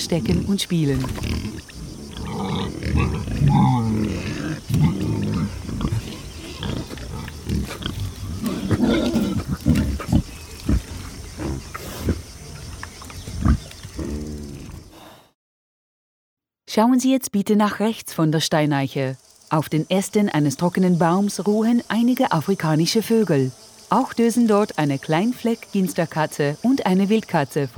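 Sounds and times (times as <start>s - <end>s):
group of wild boars grunting and snorting: 0.0s - 15.4s
speech: 0.1s - 1.6s, 2.9s - 5.0s, 16.8s - 27.7s.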